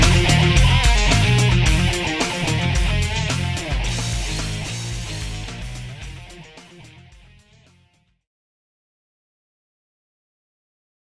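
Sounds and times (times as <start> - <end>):
distorted drive: 0.0 - 6.6.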